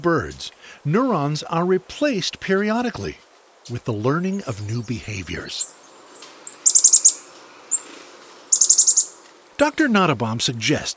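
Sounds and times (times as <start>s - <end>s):
speech: 0.0s - 5.8s, 9.6s - 10.9s
black-capped chickadee call: 6.5s - 9.2s.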